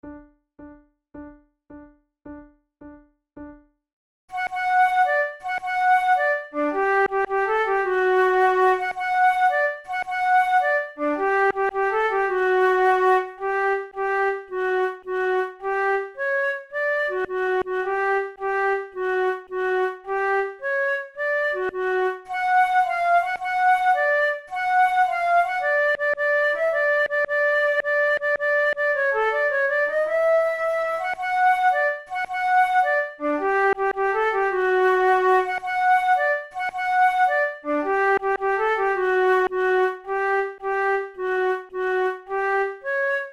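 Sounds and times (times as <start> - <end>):
flute duet: 4.3 - 43.3.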